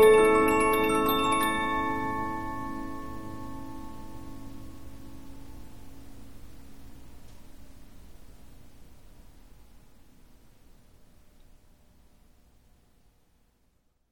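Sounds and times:
Polyphon 15-inch disc music box playing: 0.0 - 4.4.

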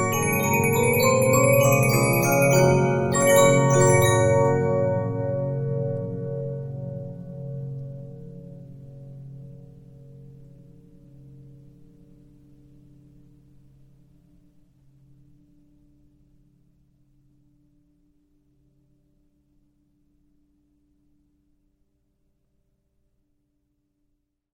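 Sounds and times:
Regina 15-inch disc music box: 0.0 - 6.1.

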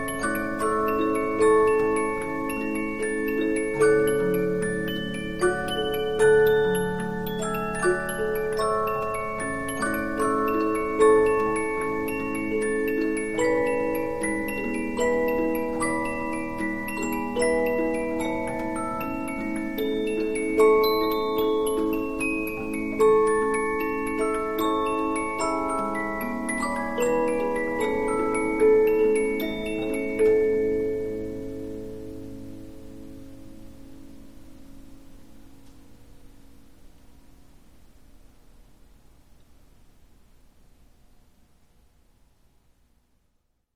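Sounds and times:
15 inch disc music box playing: 0.0 - 33.3.

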